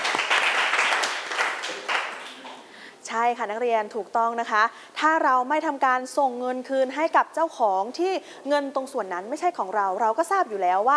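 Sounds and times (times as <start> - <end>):
classroom applause: 0.0 - 2.7
speech: 3.2 - 10.9.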